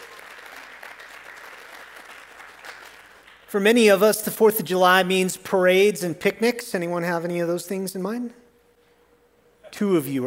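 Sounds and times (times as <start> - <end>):
audience applause: 0.0 - 3.5
speech: 3.5 - 8.4, 9.8 - 10.2.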